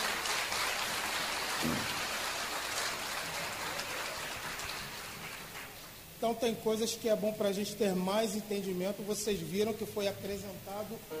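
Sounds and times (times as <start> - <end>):
audience applause: 0.0 - 5.9
speech: 6.2 - 11.1.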